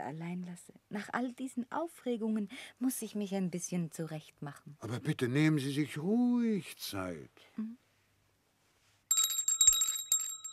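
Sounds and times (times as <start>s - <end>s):
speech: 0.0s - 7.8s
bell rung to summon the butler: 9.1s - 10.5s.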